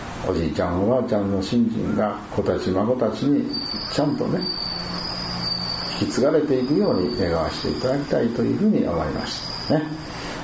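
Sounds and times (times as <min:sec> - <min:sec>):
speech: 0:00.2 - 0:04.8, 0:06.0 - 0:10.2
bell cricket song: 0:03.4 - 0:10.2.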